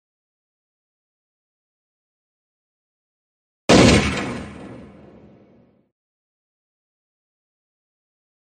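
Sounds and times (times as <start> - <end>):
handgun shot fired in the mountains: 3.7 - 5.2
gunshot echo rolling through mountains: 3.7 - 5.8.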